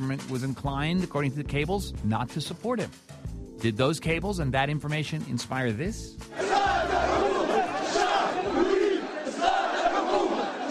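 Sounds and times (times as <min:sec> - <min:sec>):
speech: 0:00.0 - 0:07.3
protest crowd chanting: 0:06.3 - 0:10.6.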